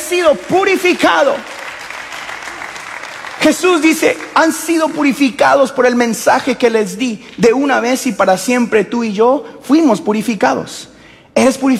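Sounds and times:
loud audience applause: 0.0 - 5.3
speech: 0.1 - 1.5, 3.4 - 11.7.

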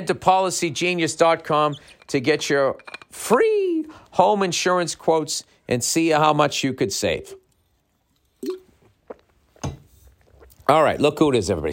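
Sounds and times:
speech: 0.0 - 7.4, 10.7 - 11.7
gulping a swig of water: 8.4 - 11.0.

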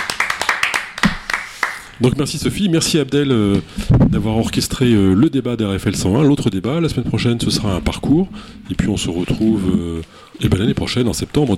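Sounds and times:
applause from people around a table: 0.0 - 2.0
speech: 2.0 - 11.5.

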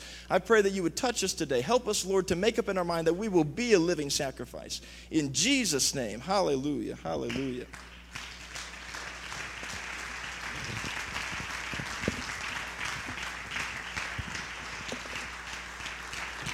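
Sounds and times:
low steady hum: 0.0 - 16.5
speech: 0.3 - 8.2
audience hand clapping: 7.2 - 16.5.

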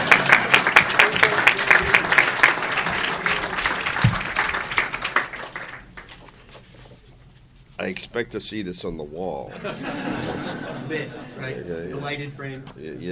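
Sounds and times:
audience applause: 0.0 - 6.2
speech: 8.2 - 13.1
laughter: 9.5 - 11.7.

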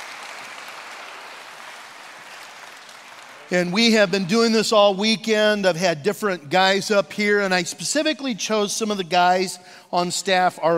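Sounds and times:
audience applause welcoming pastors onto stage: 0.0 - 4.2
speech: 3.5 - 10.7.

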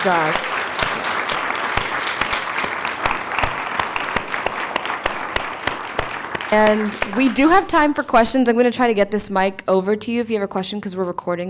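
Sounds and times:
speech: 0.0 - 0.6, 6.5 - 11.4
audience applause for panelists: 0.0 - 7.8.

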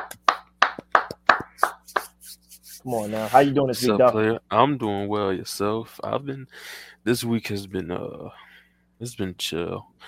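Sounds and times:
hand clapping: 0.0 - 2.9
speech: 2.8 - 8.4, 9.0 - 10.0.

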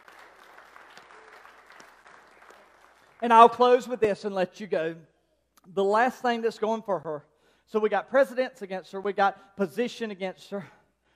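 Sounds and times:
audience clapping hands in applause: 0.0 - 3.8
speech: 3.2 - 10.8.

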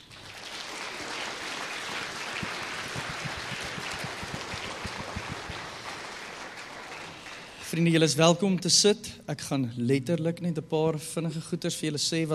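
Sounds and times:
congregation clapping in thanks during a church service: 0.0 - 8.0
speech: 7.7 - 12.3.

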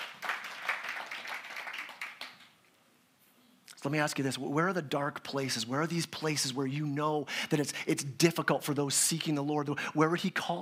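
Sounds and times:
audience clapping: 0.0 - 2.6
speech: 3.8 - 10.6.

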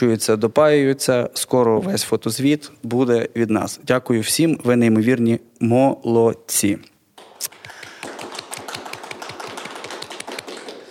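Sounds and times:
speech: 0.0 - 7.6
audience applause: 7.2 - 10.8.

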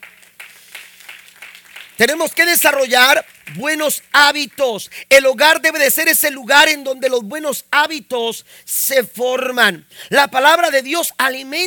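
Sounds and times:
audience applause: 0.0 - 4.7
speech: 2.0 - 11.6.

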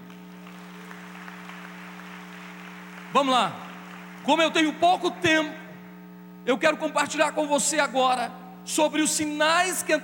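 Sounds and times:
audience applause: 0.3 - 4.3
speech: 3.1 - 3.6, 4.2 - 5.6, 6.4 - 10.0.

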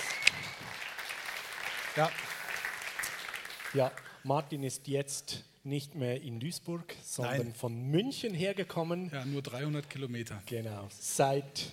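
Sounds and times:
audience applause: 0.0 - 4.1
speech: 2.0 - 2.3, 3.7 - 11.7.

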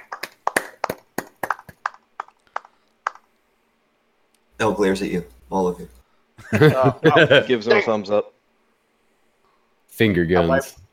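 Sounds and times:
soft golf clap: 0.0 - 3.3
speech: 4.6 - 8.3, 10.0 - 10.8
laughter: 6.4 - 7.8.

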